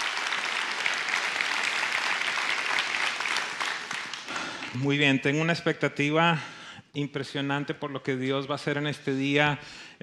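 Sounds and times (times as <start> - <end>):
audience applause: 0.0 - 4.8
speech: 4.7 - 10.0.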